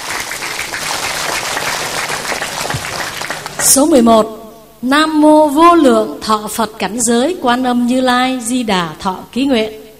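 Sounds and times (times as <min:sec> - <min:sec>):
audience applause: 0:00.0 - 0:03.8
speech: 0:03.6 - 0:09.8.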